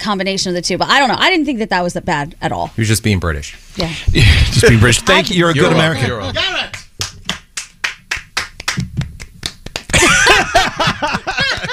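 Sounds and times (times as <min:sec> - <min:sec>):
speech: 0:00.0 - 0:06.8
person clapping: 0:06.7 - 0:10.2, 0:11.4 - 0:11.7
laughter: 0:09.9 - 0:11.7.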